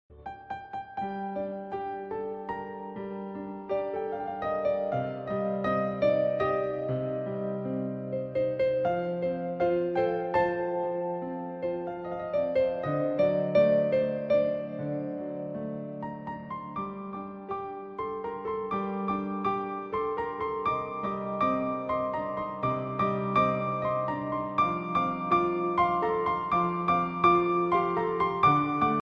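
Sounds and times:
piano ringtone: 0:00.4 - 0:29.0.

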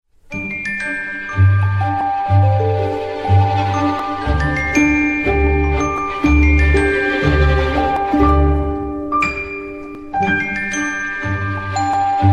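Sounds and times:
Lumia 1020 ringtone: 0:00.3 - 0:12.3.

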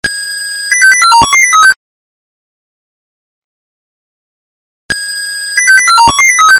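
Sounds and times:
Swedish police ringtone: 0:00.0 - 0:01.8, 0:04.9 - 0:06.5.

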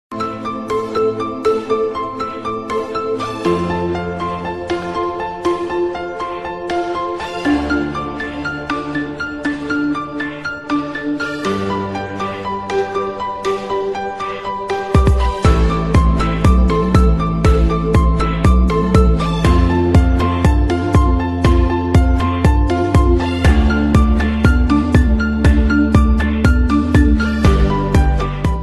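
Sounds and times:
lovely ringtone melody: 0:00.2 - 0:28.6.

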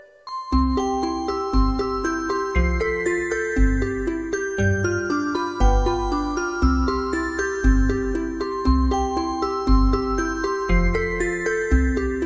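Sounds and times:
ringing music ringtone: 0:00.2 - 0:12.2.

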